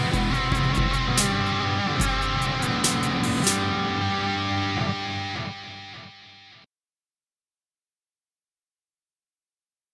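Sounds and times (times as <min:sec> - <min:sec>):
rhythm and blues music: 0:00.0 - 0:05.6.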